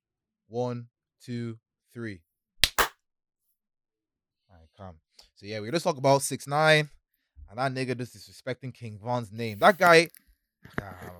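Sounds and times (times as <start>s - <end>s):
speech: 0.5s - 2.3s, 4.8s - 11.1s
hand claps for audio sync: 2.6s - 2.9s
person counting out beats: 2.6s - 2.9s.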